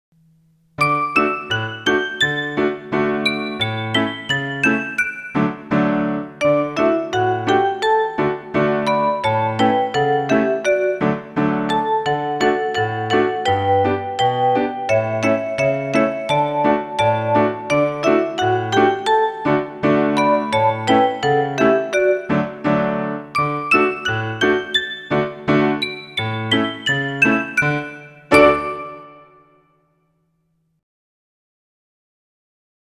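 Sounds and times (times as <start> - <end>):
instrumental music without vocals: 0.2 - 29.8.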